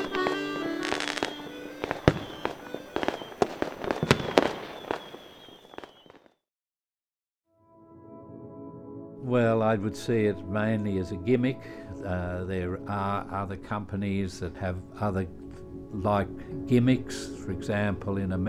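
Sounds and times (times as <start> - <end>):
fireworks fizzing whistles: 0.0 - 6.3
fireworks launching and bursting: 0.0 - 6.3
speech: 9.7 - 18.4.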